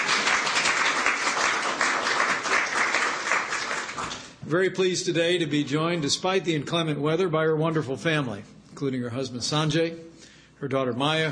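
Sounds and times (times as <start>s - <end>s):
crowd applauding: 0.0s - 4.4s
speech: 4.5s - 11.3s.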